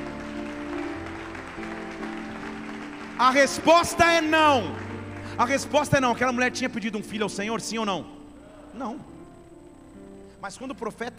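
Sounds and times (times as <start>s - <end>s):
audience applause: 0.0s - 6.4s
speech: 3.2s - 4.8s, 5.4s - 8.2s, 8.8s - 9.1s, 10.4s - 11.1s
faint sustained tone: 5.0s - 11.1s.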